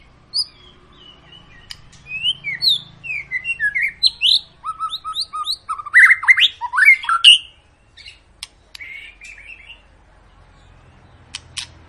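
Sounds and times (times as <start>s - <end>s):
White-rumped shama song: 0.0s - 11.8s.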